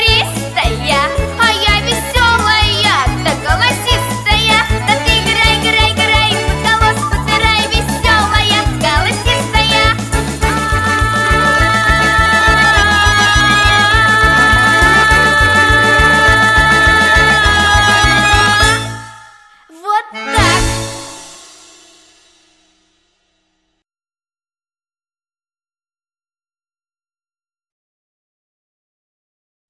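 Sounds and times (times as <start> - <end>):
garmon accordion: 0.0 - 21.5.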